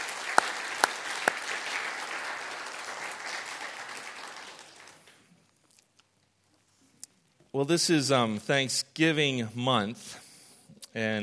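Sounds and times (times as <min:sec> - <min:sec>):
round of applause: 0:00.0 - 0:05.4
speech: 0:07.6 - 0:10.2, 0:10.9 - 0:11.2.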